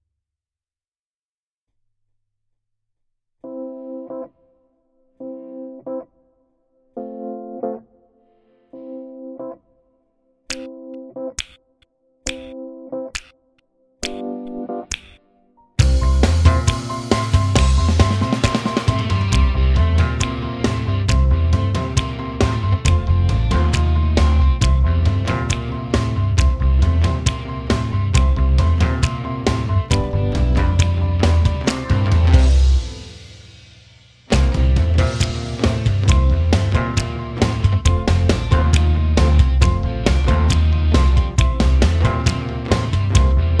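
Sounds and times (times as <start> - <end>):
instrumental music: 10.5 - 43.5.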